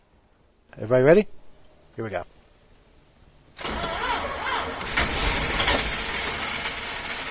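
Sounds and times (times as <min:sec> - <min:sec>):
speech: 0:00.8 - 0:01.4, 0:02.0 - 0:02.4
car engine cranking while the gas is pressed: 0:03.6 - 0:07.3.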